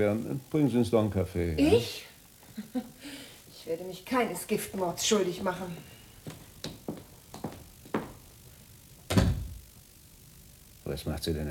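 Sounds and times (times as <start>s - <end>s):
speech: 0.0s - 6.4s, 10.9s - 11.4s
door closing: 9.1s - 9.6s.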